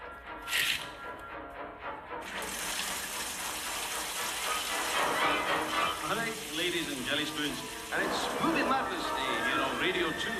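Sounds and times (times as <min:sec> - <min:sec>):
shower spraying water: 0:02.2 - 0:10.3
speech: 0:06.6 - 0:10.3.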